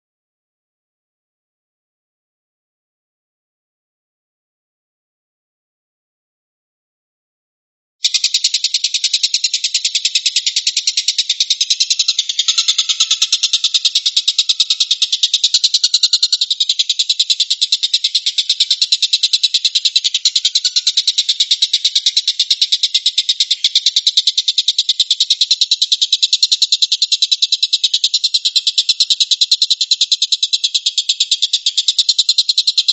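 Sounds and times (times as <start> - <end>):
stork-billed kingfisher rattling call: 8.0 - 32.9.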